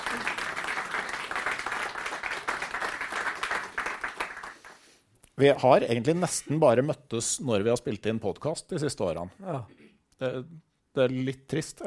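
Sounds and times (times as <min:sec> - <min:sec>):
small audience applause: 0:00.0 - 0:04.9
speech: 0:05.4 - 0:11.8.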